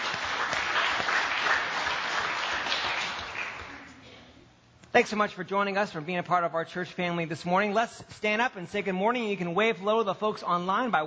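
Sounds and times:
crowd clapping: 0.0 - 4.0
speech: 5.0 - 11.0.

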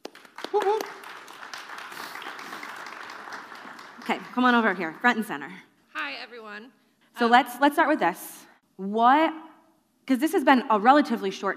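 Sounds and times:
round of applause: 0.0 - 5.1
speech: 0.5 - 1.0, 4.1 - 5.7, 6.4 - 9.4, 10.1 - 11.5.

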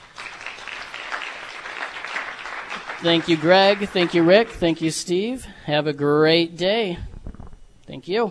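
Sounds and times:
applause from a big morning crowd: 0.0 - 4.7
speech: 3.0 - 7.1, 7.9 - 8.3.

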